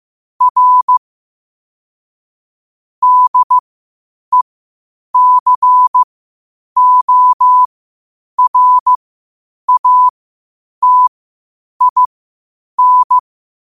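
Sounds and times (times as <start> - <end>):
morse code at 5 wpm: 0.4 - 1.0, 3.0 - 3.6, 5.2 - 6.1, 6.8 - 7.7, 8.4 - 9.0, 9.7 - 10.1, 10.8 - 11.1, 11.8 - 12.1, 12.8 - 13.2.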